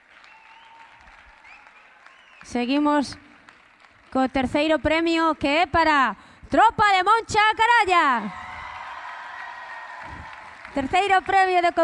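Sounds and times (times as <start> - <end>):
audience applause: 0.0 - 2.5, 8.3 - 11.8
speech: 2.4 - 3.3, 4.1 - 8.4, 10.8 - 11.8.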